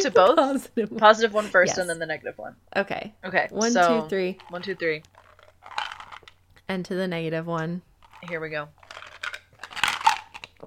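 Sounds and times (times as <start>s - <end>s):
speech: 0.0s - 5.8s, 6.7s - 8.8s
ice cubes rattling in a cup: 4.1s - 6.4s, 8.0s - 10.6s.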